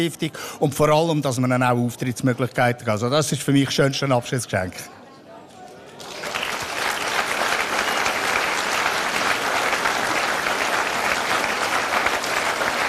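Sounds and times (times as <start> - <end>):
speech: 0.0 - 5.0
audience applause: 6.0 - 12.8.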